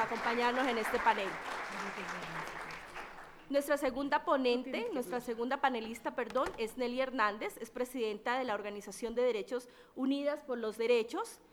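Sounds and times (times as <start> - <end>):
audience applause: 0.0 - 3.5
speech: 0.1 - 2.6, 3.5 - 11.5.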